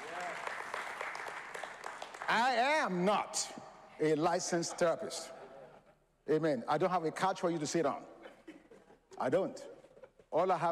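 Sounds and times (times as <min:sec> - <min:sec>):
audience applause: 0:00.0 - 0:02.4
speech: 0:02.3 - 0:05.4, 0:06.3 - 0:08.2, 0:09.2 - 0:09.7, 0:10.3 - 0:10.7.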